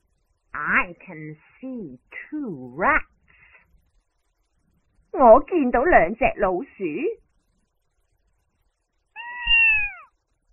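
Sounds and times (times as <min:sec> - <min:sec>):
speech: 0:00.6 - 0:03.1, 0:05.2 - 0:07.2
cat meowing: 0:09.2 - 0:10.2.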